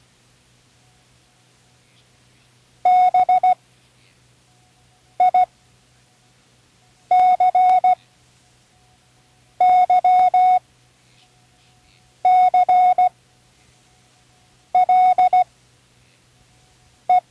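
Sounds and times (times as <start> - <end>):
Morse code spelling words: 2.9 - 3.6, 5.2 - 5.5, 7.1 - 8.0, 9.6 - 10.6, 12.2 - 13.2, 14.8 - 15.5.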